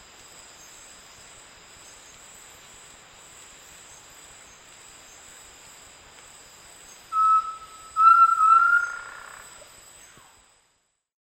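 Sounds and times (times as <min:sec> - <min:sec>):
Undulated Tinamou in the South American Eastern Lowlands: 0:07.2 - 0:09.5.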